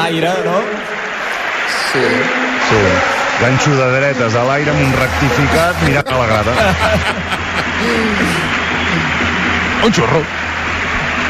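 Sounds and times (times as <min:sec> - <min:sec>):
speech: 0:00.0 - 0:10.4
audience applause at a basketball game: 0:00.1 - 0:11.2
laughter: 0:04.7 - 0:09.4.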